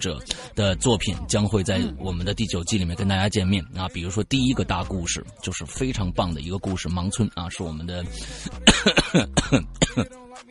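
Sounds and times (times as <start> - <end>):
speech: 0.0 - 10.5
person coughing: 8.6 - 10.1.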